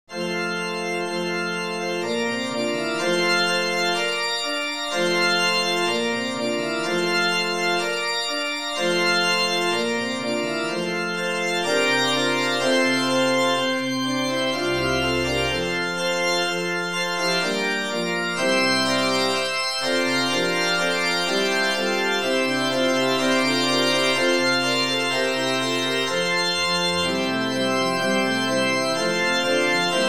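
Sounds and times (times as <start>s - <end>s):
organ playing a hymn: 0.1s - 30.0s.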